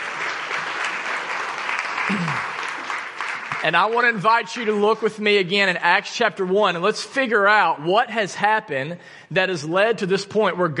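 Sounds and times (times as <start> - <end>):
audience applause for volunteers: 0.0 - 4.8
speech: 2.1 - 2.5, 3.6 - 10.7.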